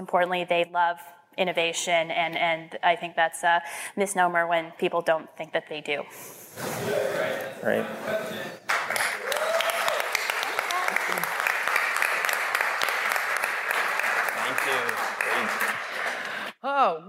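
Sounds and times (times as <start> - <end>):
speech: 0.0 - 8.6
audience applause: 8.7 - 16.5.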